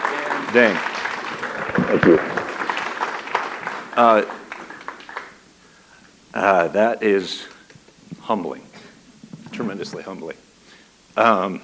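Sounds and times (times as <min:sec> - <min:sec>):
audience applause: 0:00.0 - 0:05.4
speech: 0:00.5 - 0:00.9, 0:01.9 - 0:02.4, 0:04.0 - 0:04.4, 0:06.3 - 0:07.5, 0:08.3 - 0:08.7, 0:09.6 - 0:10.4, 0:11.2 - 0:11.6.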